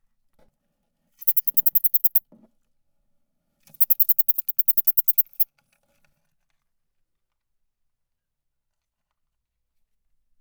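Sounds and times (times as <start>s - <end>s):
bush-cricket protest sound clicking pulses: 1.2s - 2.2s, 3.8s - 5.4s.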